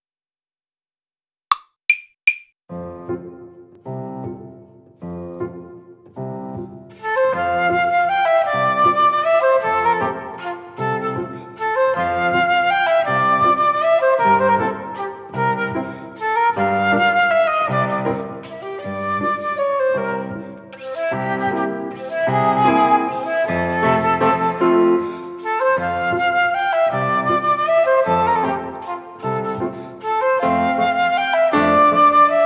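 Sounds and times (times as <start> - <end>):
waltz performance track: 3.1 - 32.4.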